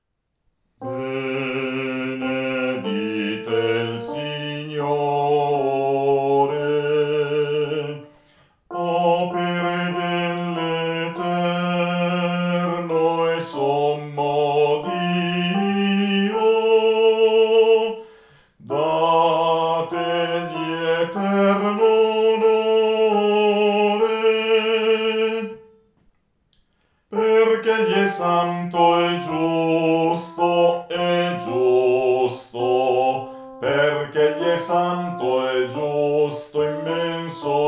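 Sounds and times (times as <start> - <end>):
contralto voices singing: 0.8 - 25.8, 27.1 - 37.6.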